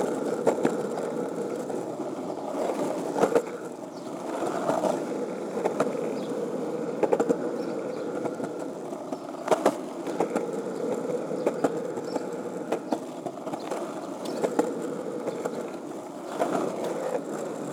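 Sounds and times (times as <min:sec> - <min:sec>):
skateboard wheels rolling: 0:00.0 - 0:17.7.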